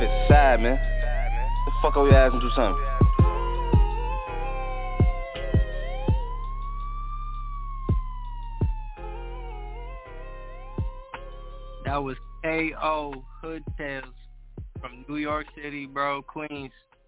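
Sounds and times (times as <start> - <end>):
low rumble: 0.0 - 16.7
police car siren wailing: 0.0 - 16.7
speech: 0.5 - 0.9, 1.8 - 3.0, 12.0 - 14.2, 14.8 - 16.9.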